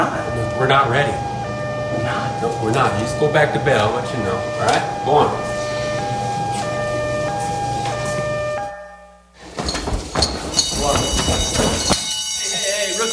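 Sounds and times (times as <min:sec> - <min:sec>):
loud two-tone alarm siren: 0:00.0 - 0:09.4, 0:10.5 - 0:13.1
speech: 0:00.6 - 0:01.3, 0:02.0 - 0:05.5
clattering noise: 0:09.4 - 0:12.2.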